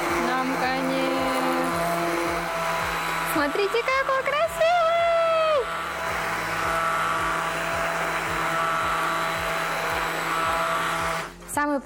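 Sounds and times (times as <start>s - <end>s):
kitchen blender blending food: 0.0s - 11.7s
speech: 3.5s - 4.1s.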